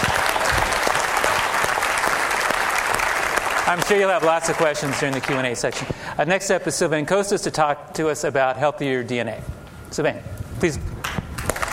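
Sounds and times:
audience applause: 0:00.0 - 0:05.9, 0:11.4 - 0:11.7
speech: 0:03.7 - 0:10.9.

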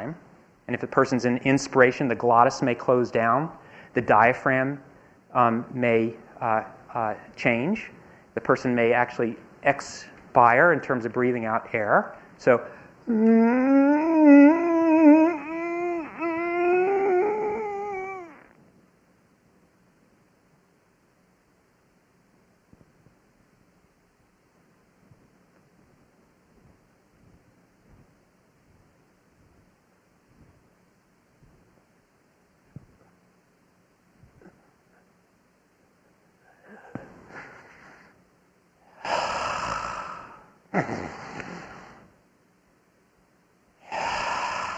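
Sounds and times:
speech: 0:00.0 - 0:14.4
voice imitating the strained cry of a person in a tonic-clonic seizure: 0:13.1 - 0:18.5, 0:39.0 - 0:41.8, 0:43.9 - 0:44.7.

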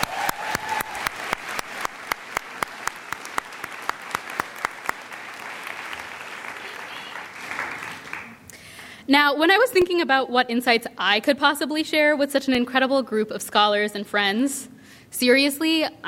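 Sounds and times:
audience round of applause: 0:00.0 - 0:08.4
speech: 0:09.1 - 0:16.0.

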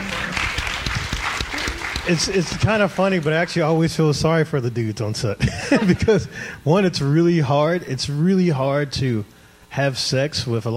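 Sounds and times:
audience applause: 0:00.0 - 0:03.6
speech: 0:02.1 - 0:10.7
laughter: 0:05.4 - 0:06.4.

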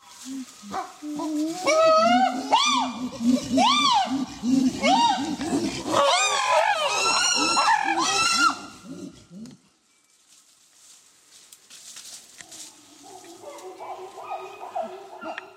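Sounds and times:
group of chimpanzees pant-hooting: 0:00.2 - 0:09.5.

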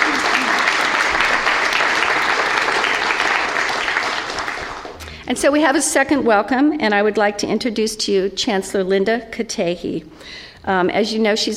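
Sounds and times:
audience round of applause: 0:00.0 - 0:05.1
speech: 0:05.3 - 0:11.5.

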